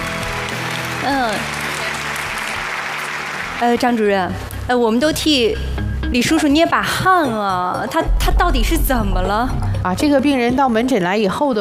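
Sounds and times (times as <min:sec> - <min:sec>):
studio audience applause welcoming a guest liver disease specialist: 0:00.0 - 0:04.3
speech: 0:01.0 - 0:01.6, 0:03.6 - 0:11.6.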